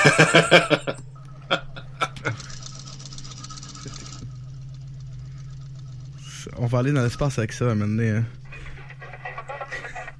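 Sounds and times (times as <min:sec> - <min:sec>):
laughter: 0:00.0 - 0:02.6, 0:08.5 - 0:10.1
low electronic hum: 0:00.0 - 0:10.1
speech: 0:00.2 - 0:00.9, 0:06.8 - 0:08.4
electronic blips: 0:01.0 - 0:08.6.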